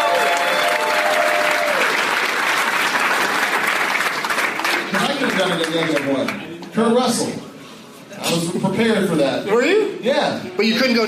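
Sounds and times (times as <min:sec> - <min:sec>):
game show audience applause for a contestant: 0:00.0 - 0:06.4
speech: 0:05.5 - 0:07.5, 0:08.2 - 0:11.0.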